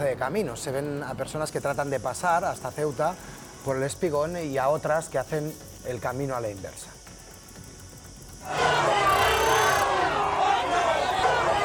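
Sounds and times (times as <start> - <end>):
speech: 0.0 - 7.0
crowd of citizens of Ceuta shouting: 8.4 - 11.6.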